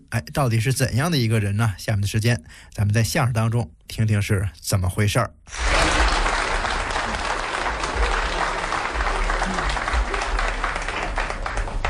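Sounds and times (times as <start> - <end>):
speech: 0.1 - 5.8
audience applauding warmly: 5.5 - 11.8.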